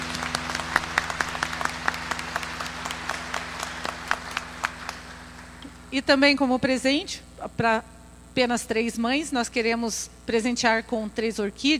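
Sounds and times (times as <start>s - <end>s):
audience applause: 0.0s - 6.0s
low constant hum: 0.0s - 8.8s
speech: 5.9s - 11.7s.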